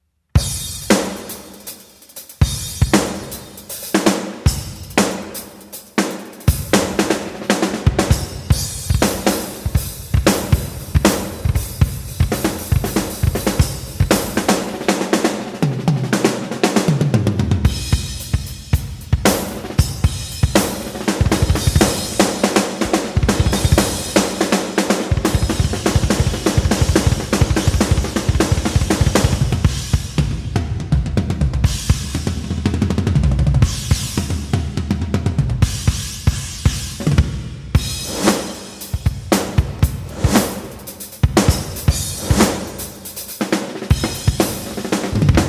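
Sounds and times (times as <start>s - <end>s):
drum solo: 0.4s - 45.4s.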